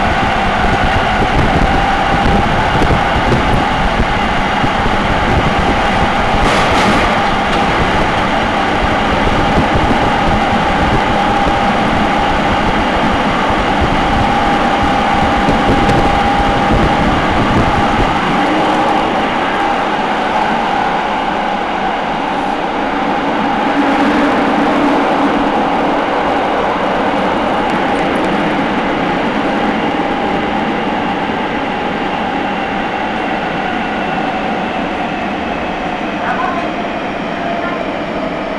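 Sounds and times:
Nagoya Municipal Subway Sakura-dori Line train in motion roaring: 0:00.0 - 0:38.5
steady whining tone of subway train: 0:00.0 - 0:38.5.

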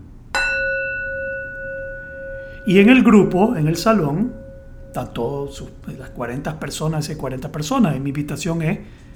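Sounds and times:
Tibetan bell struck and ringing: 0:00.3 - 0:09.1
speech: 0:02.6 - 0:04.4, 0:05.0 - 0:09.1.

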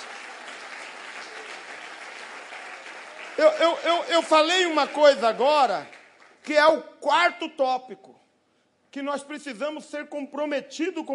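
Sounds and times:
audience applauding: 0:00.0 - 0:06.5
speech: 0:03.4 - 0:08.2, 0:08.9 - 0:11.1.

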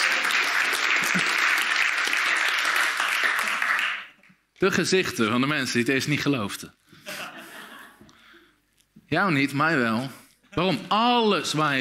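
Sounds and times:
audience applause: 0:00.0 - 0:04.2
laughter: 0:00.9 - 0:01.6, 0:07.0 - 0:08.1
speech: 0:04.6 - 0:06.8, 0:09.1 - 0:11.7.

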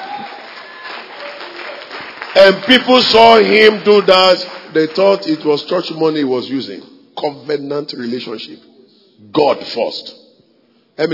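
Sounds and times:
audience clapping: 0:00.0 - 0:06.1
speech: 0:02.4 - 0:10.2, 0:11.0 - 0:11.1.

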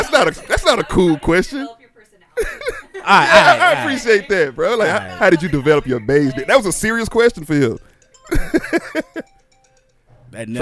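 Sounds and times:
speech: 0:00.2 - 0:01.8, 0:02.4 - 0:09.3, 0:10.3 - 0:10.6
laughter: 0:02.4 - 0:04.1, 0:08.3 - 0:09.2
phone ringing: 0:05.2 - 0:10.6.

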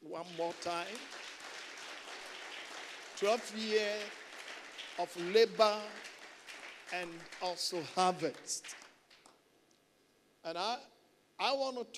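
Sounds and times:
audience clapping: 0:00.0 - 0:09.4
speech: 0:00.2 - 0:01.2, 0:03.2 - 0:04.2, 0:05.0 - 0:06.1, 0:06.9 - 0:08.8, 0:10.4 - 0:11.9.

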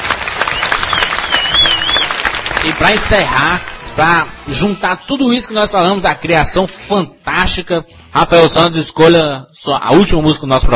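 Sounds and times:
applause: 0:00.0 - 0:04.0
speech: 0:02.6 - 0:10.7.

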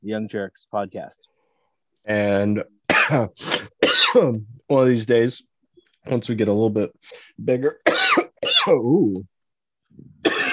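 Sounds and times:
speech: 0:00.0 - 0:01.4, 0:02.0 - 0:09.3
harsh coughing: 0:02.9 - 0:04.4, 0:07.8 - 0:08.9, 0:10.2 - 0:10.5.

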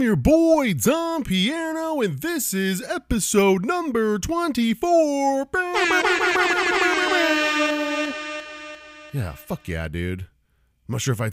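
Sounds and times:
speech: 0:00.0 - 0:07.8, 0:09.1 - 0:10.3, 0:10.9 - 0:11.3
air horn sound effect: 0:05.7 - 0:09.6.

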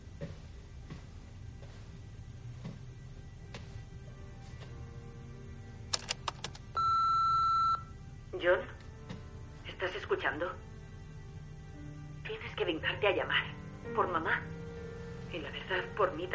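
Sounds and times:
answering machine beep: 0:06.7 - 0:07.9
speech: 0:08.4 - 0:08.8, 0:09.8 - 0:10.7, 0:12.3 - 0:14.6, 0:15.3 - 0:16.3.

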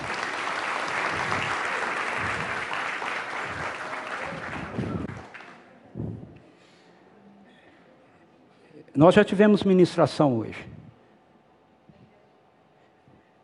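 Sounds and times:
audience applause: 0:00.0 - 0:05.6
speech: 0:09.0 - 0:10.7.

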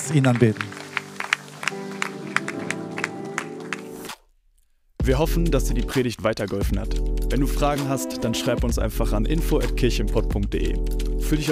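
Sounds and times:
speech: 0:00.0 - 0:00.8, 0:05.0 - 0:11.4
audience applause: 0:00.0 - 0:04.2.

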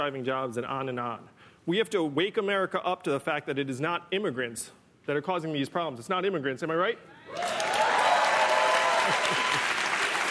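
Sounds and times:
speech: 0:00.0 - 0:07.7
crowd applause: 0:07.3 - 0:10.2
laughter: 0:08.9 - 0:09.8.

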